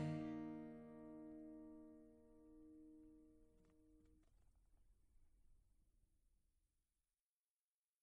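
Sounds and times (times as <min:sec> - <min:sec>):
music recorded on a USB microphone: 0:00.0 - 0:03.2.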